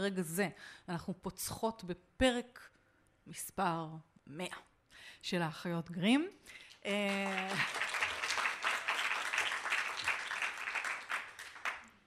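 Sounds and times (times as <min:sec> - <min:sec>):
speech: 0:00.0 - 0:07.9
live audience applauding: 0:07.0 - 0:12.0.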